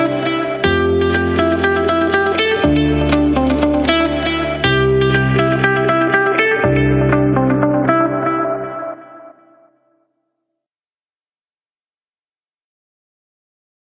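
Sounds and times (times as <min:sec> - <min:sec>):
corporate music: 0:00.0 - 0:09.8.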